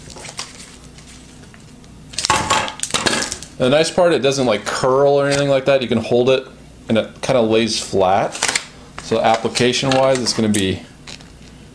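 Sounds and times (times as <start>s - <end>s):
duct tape being handled, rustling, crinkling and ripping: 0.0s - 3.5s, 8.3s - 11.6s
speech: 3.6s - 10.9s.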